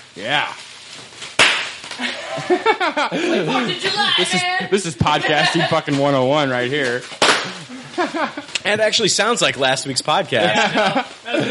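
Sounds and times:
speech: 0.2s - 1.1s, 2.0s - 11.4s
bubble wrap being popped: 0.5s - 2.0s, 6.9s - 7.7s
people talking and laughing: 2.0s - 6.1s, 7.4s - 11.4s.

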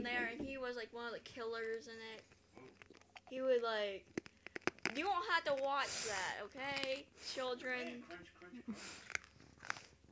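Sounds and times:
speech: 0.0s - 4.2s, 4.9s - 9.2s
crunching on a lollipop: 2.2s - 3.4s, 4.0s - 7.0s, 8.8s - 10.1s.

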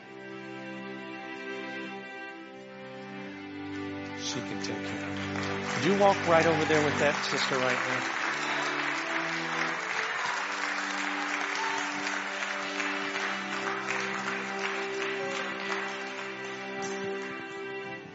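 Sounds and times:
sustained organ-like chords: 0.0s - 18.1s
audience applauding: 3.7s - 18.1s
speech: 4.2s - 8.5s.

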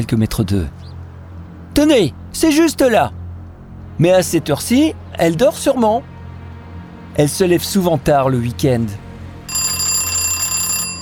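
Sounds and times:
speech: 0.0s - 0.9s, 1.8s - 3.2s, 4.0s - 6.1s, 7.2s - 9.0s
doorbell ringing: 9.5s - 11.0s.

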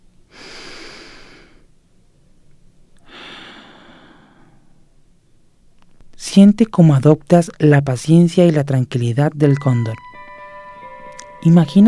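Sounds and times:
calm slow breathing: 0.3s - 1.8s, 3.0s - 5.0s
speech: 6.4s - 10.1s, 11.4s - 11.8s.

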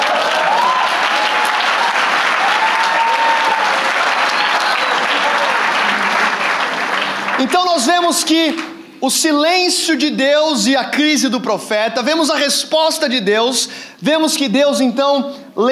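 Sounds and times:
audience applause: 0.0s - 8.7s
speech: 7.4s - 15.7s.

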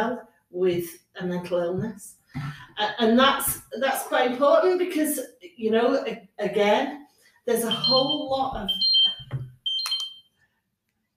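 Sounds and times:
speech: 0.0s - 8.9s
blood sugar monitor alarm chirping tones: 7.7s - 10.4s.

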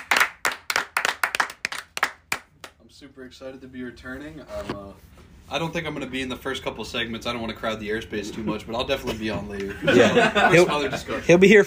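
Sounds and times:
audience clapping: 0.0s - 2.8s
speech: 3.0s - 11.6s
laughter: 8.2s - 11.3s.

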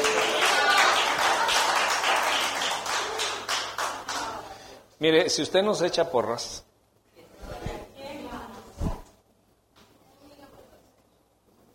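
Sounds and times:
applause: 0.0s - 4.5s
speech: 5.0s - 6.7s.

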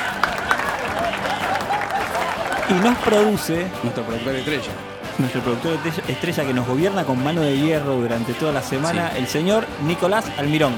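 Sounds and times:
audience applause: 0.0s - 3.7s
laughter: 0.0s - 7.3s
speech: 2.7s - 10.7s.

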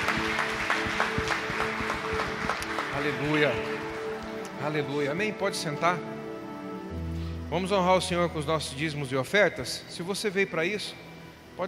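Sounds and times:
audience applause: 0.0s - 5.2s
speech: 3.0s - 3.8s, 4.6s - 6.1s, 7.5s - 11.6s.

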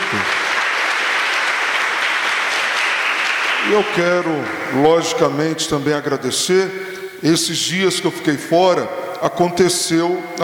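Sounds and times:
audience applause: 0.0s - 4.5s
speech: 3.6s - 10.4s.

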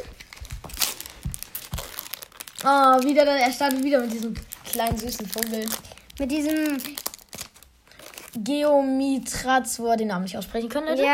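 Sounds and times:
card pack foil wrapper torn open: 0.3s - 8.4s
speech: 2.6s - 7.0s, 8.4s - 11.1s.

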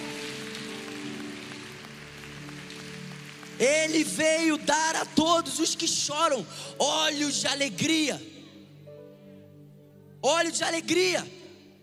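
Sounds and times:
audience applauding loudly: 0.0s - 5.0s
speech: 3.6s - 8.4s, 10.2s - 11.4s.

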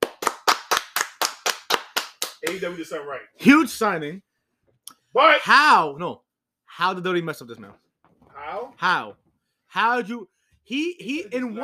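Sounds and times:
hand claps: 0.0s - 2.7s
speech: 2.4s - 4.3s, 5.2s - 6.2s, 6.8s - 7.8s, 8.5s - 11.6s.

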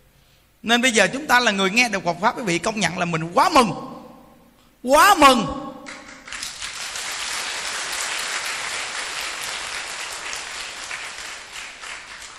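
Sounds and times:
speech: 0.6s - 3.9s, 4.8s - 5.6s
audience applause: 6.1s - 12.3s.

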